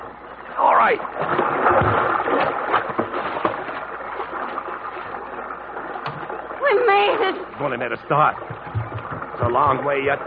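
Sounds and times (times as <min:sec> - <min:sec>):
water sloshing and splashing: 0:00.0 - 0:10.2
speech: 0:00.9 - 0:01.4, 0:07.0 - 0:08.7, 0:09.4 - 0:10.2
hollow wooden knocks as people clamber into a rowboat: 0:01.2 - 0:03.8, 0:06.0 - 0:06.3, 0:08.0 - 0:10.2.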